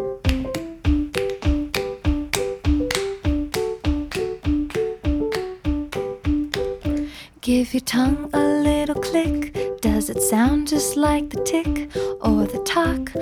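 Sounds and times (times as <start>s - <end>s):
light melodic musical backing: 0.0s - 13.2s
fist smacking into an open palm: 0.3s - 7.1s
speech: 7.5s - 13.2s.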